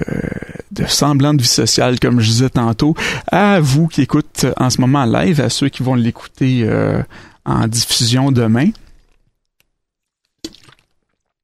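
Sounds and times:
speech: 0:00.8 - 0:08.8
sip of water: 0:08.8 - 0:09.3, 0:10.0 - 0:11.4.

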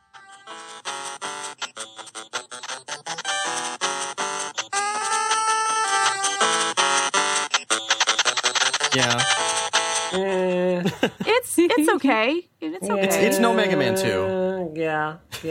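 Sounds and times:
video game soundtrack music: 0:00.0 - 0:10.2
speech: 0:09.0 - 0:09.5, 0:10.1 - 0:15.5.

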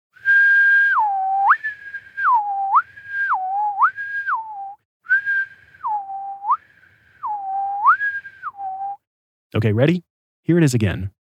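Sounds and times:
person whistling a clear two-note test tone: 0:00.2 - 0:09.0
speech: 0:09.6 - 0:11.2.

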